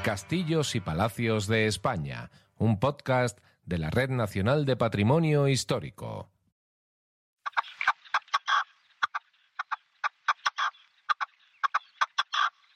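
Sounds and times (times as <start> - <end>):
speech: 0.0 - 6.4
red-legged partridge calling in its natural habitat: 7.5 - 12.7.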